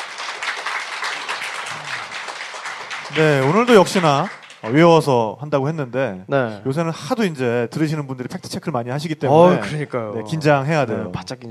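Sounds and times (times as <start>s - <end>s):
audience applause: 0.0s - 4.9s
speech: 3.1s - 11.5s.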